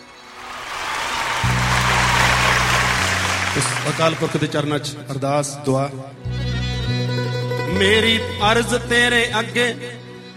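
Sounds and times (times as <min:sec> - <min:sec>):
audience clapping at a Punjabi gathering: 0:00.0 - 0:04.7
speech: 0:03.6 - 0:06.2, 0:06.9 - 0:10.0.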